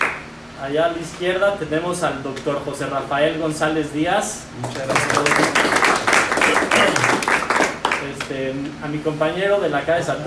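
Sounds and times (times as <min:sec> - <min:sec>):
speech: 0:00.6 - 0:05.8, 0:08.0 - 0:10.2
crowd applauding: 0:04.6 - 0:08.1.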